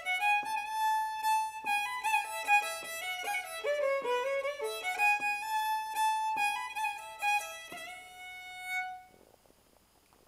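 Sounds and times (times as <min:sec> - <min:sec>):
waltz from Finland: 0:00.0 - 0:08.2.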